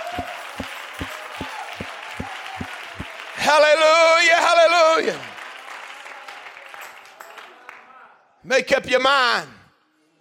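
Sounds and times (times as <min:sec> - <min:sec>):
audience clapping: 0:00.0 - 0:03.9, 0:05.0 - 0:07.9
speech: 0:05.0 - 0:05.3, 0:08.5 - 0:09.6.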